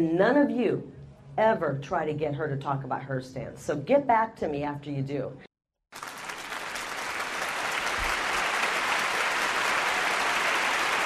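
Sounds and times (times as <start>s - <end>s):
speech: 0.0s - 5.5s
audience applauding and cheering wildly: 6.0s - 11.0s.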